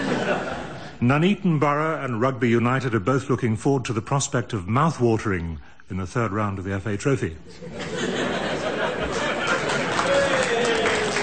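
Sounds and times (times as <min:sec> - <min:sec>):
speech: 0:00.3 - 0:08.2
crowd murmuring and chuckling: 0:07.5 - 0:11.0
audience clapping: 0:09.0 - 0:11.2.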